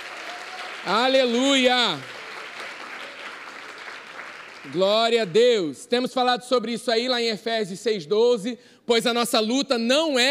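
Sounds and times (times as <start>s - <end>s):
audience applause: 0.0s - 5.4s
speech: 0.8s - 2.2s, 4.6s - 10.3s.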